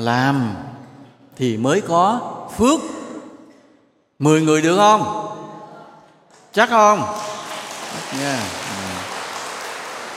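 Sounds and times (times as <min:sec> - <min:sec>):
speech: 0:00.0 - 0:00.7, 0:01.4 - 0:03.0, 0:04.2 - 0:05.3, 0:06.6 - 0:07.4, 0:08.1 - 0:08.9
audience clapping during a Buddhist dharma talk: 0:06.3 - 0:10.1.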